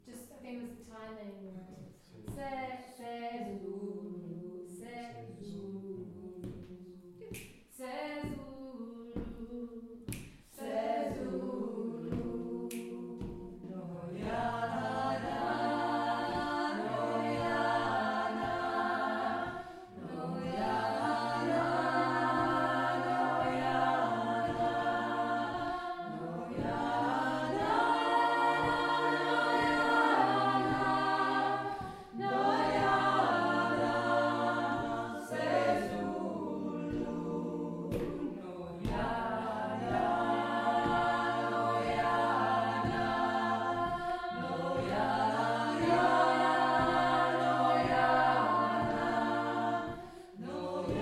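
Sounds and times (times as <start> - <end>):
people chanting in a workshop: 2.0 - 50.9.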